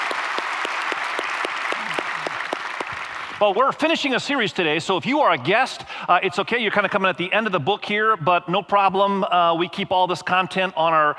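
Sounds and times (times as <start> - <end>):
audience applause: 0.0 - 3.8
speech: 3.4 - 11.1.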